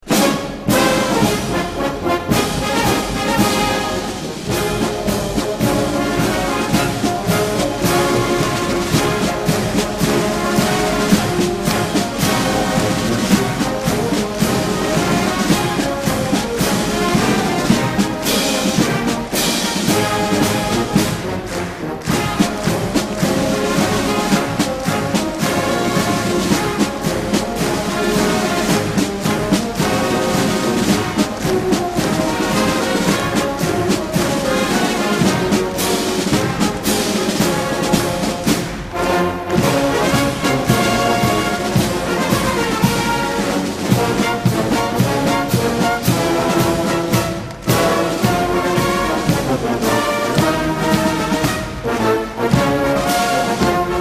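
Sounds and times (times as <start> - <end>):
march music: 0.0 - 54.0.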